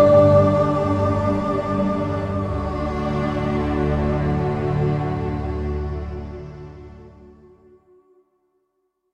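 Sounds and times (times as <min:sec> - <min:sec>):
alto singer singing emotionally: 0:00.0 - 0:05.0.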